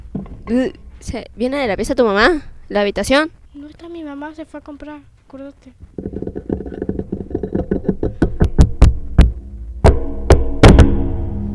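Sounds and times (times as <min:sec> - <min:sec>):
speech: 0:00.5 - 0:05.9
knocking on a door: 0:06.9 - 0:11.0.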